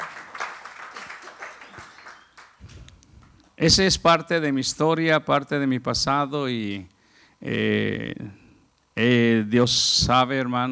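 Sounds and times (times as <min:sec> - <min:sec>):
audience applause: 0:00.0 - 0:02.9
speech: 0:03.6 - 0:08.4, 0:09.0 - 0:10.7.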